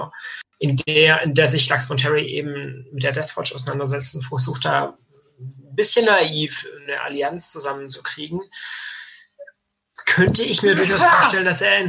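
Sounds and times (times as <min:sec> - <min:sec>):
speech: 0:00.0 - 0:09.0, 0:10.1 - 0:11.8
person sneezing: 0:10.6 - 0:11.4.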